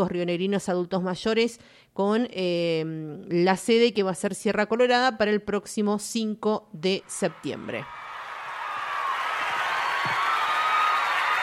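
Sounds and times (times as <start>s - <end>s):
speech: 0.0s - 8.0s
audience applause: 7.8s - 11.4s.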